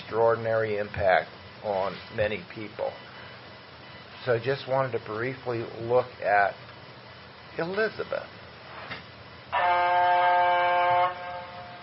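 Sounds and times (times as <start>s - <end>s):
speech: 0.1s - 3.1s, 4.2s - 6.6s, 7.6s - 8.4s
train horn: 9.5s - 11.8s.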